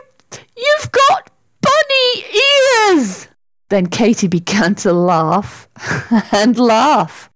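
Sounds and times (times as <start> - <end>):
girl screaming loudly: 0.6 - 3.2
speech: 3.7 - 7.3.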